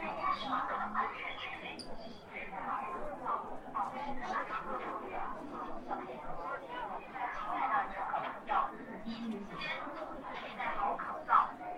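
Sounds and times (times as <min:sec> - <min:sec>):
crowd chatter at Hongya Cave in Chongqing: 0:00.0 - 0:11.7.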